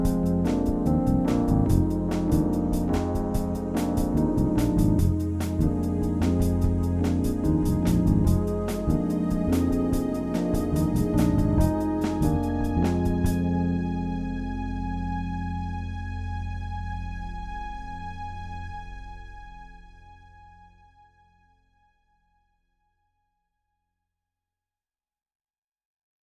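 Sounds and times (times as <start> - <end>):
Rhodes synth: 0.0 - 18.6.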